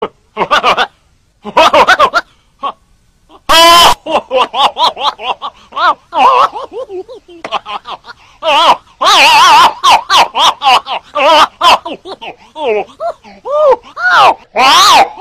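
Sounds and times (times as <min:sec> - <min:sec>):
person laughing: 0:00.4 - 0:15.1.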